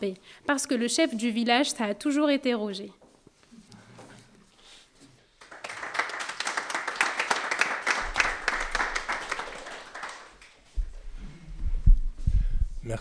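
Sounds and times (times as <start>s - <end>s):
speech: 0.0s - 3.0s
audience applause: 5.4s - 10.6s
low rumbling noise: 10.8s - 12.9s.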